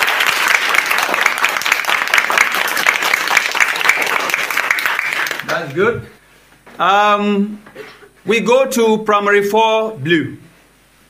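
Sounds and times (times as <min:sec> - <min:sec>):
round of applause: 0:00.0 - 0:05.8
speech: 0:05.6 - 0:06.2, 0:06.8 - 0:10.4.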